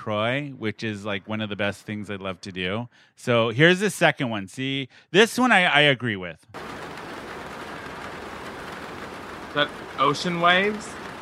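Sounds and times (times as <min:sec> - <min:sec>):
speech: 0:00.0 - 0:06.7, 0:09.5 - 0:11.0
rain on a roof: 0:06.6 - 0:11.2.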